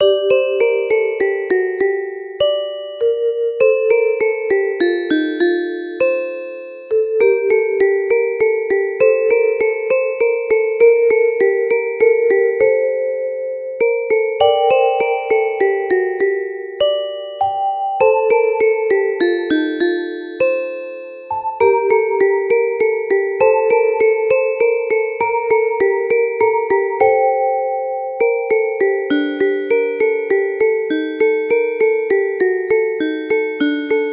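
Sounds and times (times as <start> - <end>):
lullaby music: 0.0 - 34.1.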